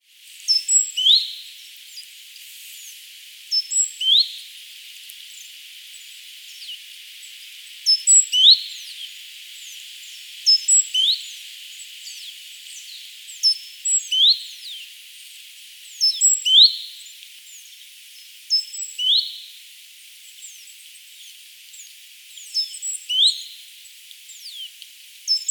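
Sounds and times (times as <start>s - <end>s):
thin calls of other birds: 0.2s - 25.4s.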